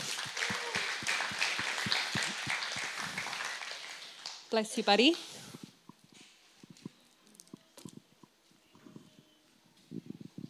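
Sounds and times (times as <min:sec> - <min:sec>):
crowd applauding: 0:00.0 - 0:04.5
speech: 0:04.5 - 0:05.3.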